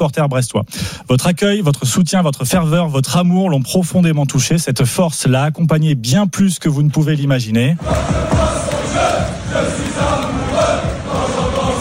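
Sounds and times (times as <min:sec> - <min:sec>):
speech: 0:00.0 - 0:10.7
football supporters chanting a tribute song: 0:07.8 - 0:11.8.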